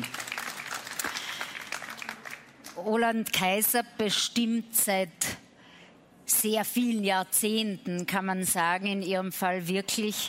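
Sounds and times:
audience applause: 0.0 - 2.6
speech: 2.8 - 5.3, 6.4 - 10.2.

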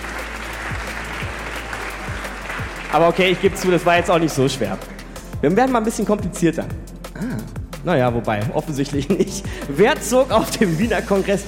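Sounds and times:
studio audience applause on a quiz show: 0.0 - 5.1
speech: 2.9 - 11.4.

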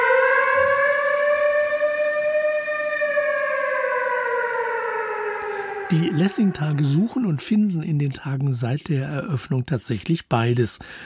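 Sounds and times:
air raid siren wailing: 0.0 - 7.9
speech: 5.9 - 11.0.

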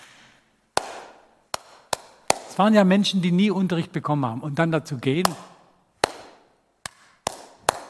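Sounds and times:
hand clapping simple rhythms: 0.8 - 2.6, 5.2 - 7.8
speech: 2.6 - 5.5.

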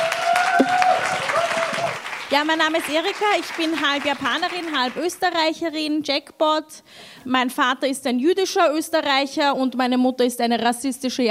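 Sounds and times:
audience applause: 0.0 - 5.2
speech: 2.3 - 11.2.

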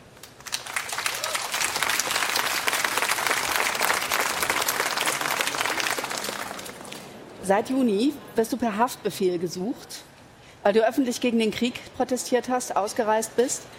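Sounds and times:
audience applause: 0.2 - 7.2
speech: 7.5 - 13.7.

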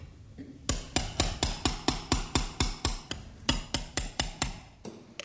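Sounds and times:
mallet driving a surgical chisel into bone: 0.7 - 4.8.

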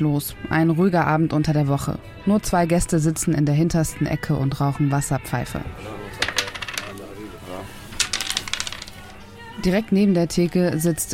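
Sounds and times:
speech: 0.0 - 6.2, 9.6 - 11.1
backgammon pieces clicking on board: 6.2 - 7.0, 8.0 - 9.2.

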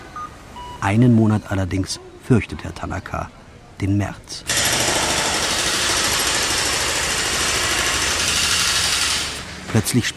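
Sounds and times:
speech: 0.8 - 4.6, 9.7 - 10.1
construction machinery roaring: 4.5 - 10.0.

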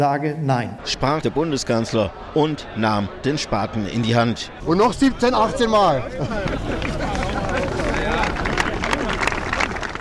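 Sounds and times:
speech: 0.0 - 7.1
crowd murmuring and chattering: 0.6 - 9.9
laughter: 0.8 - 9.9
light uneven applause: 5.1 - 9.9.

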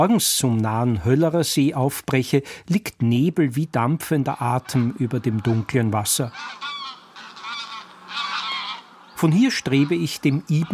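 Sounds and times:
speech: 0.0 - 6.9, 9.2 - 10.7
greylag geese flock honking in flight: 4.4 - 10.7.

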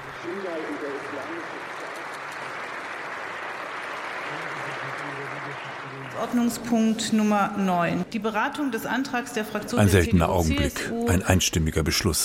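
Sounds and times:
applause in parliament: 0.0 - 7.1
speech: 0.2 - 1.6, 6.2 - 12.2.

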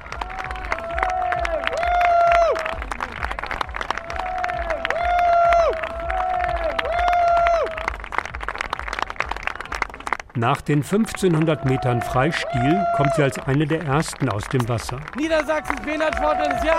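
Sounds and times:
crowd applause and cheering at triathlon: 0.0 - 16.7
speech: 10.4 - 16.7.

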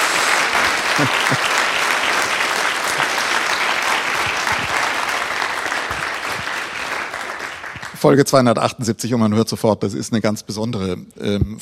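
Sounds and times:
laughter: 0.0 - 7.1
large live audience applauding: 0.0 - 8.4
speech: 1.0 - 1.5, 8.0 - 11.6.

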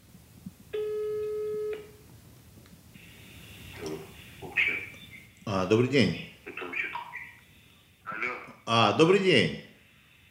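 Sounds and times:
telephone ringing on outgoing call: 0.8 - 2.0
speech: 5.6 - 6.3, 8.7 - 9.6.

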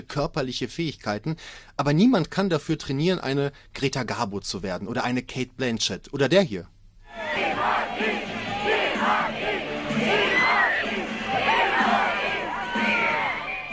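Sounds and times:
speech: 0.0 - 6.8
fans screaming and shrieking in Venedig: 7.1 - 13.7.

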